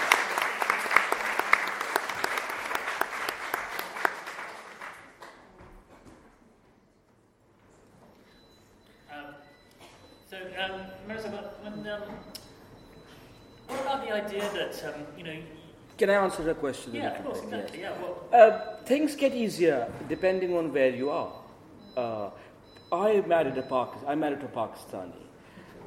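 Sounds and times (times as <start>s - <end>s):
audience applause: 0.0s - 5.5s
speech: 14.2s - 21.4s, 22.0s - 25.3s.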